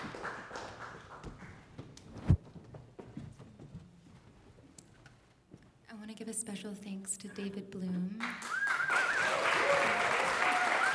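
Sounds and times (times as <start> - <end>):
appreciative applause for a thanked collaborator: 0.0 - 1.8, 8.2 - 10.9
speech: 6.3 - 8.6.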